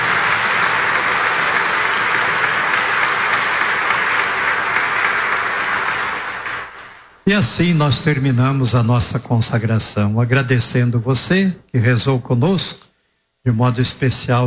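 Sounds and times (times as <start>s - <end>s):
big round of applause from a crowd: 0.0s - 7.1s
speech: 7.3s - 12.8s, 13.4s - 14.4s.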